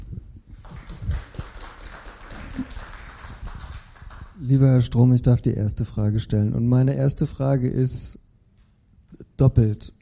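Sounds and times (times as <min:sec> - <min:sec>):
applause: 0:00.6 - 0:04.7
speech: 0:04.4 - 0:08.2, 0:09.4 - 0:10.0.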